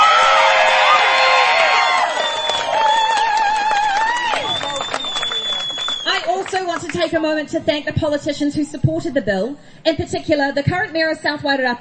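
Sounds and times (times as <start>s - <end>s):
large crowd cheering and whooping: 0.0s - 6.9s
scattered clapping: 0.0s - 7.2s
speech: 7.0s - 11.8s.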